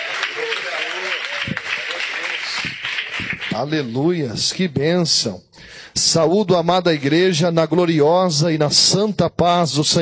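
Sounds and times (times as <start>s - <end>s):
audience applauding: 0.0s - 4.1s
speech: 3.6s - 10.0s.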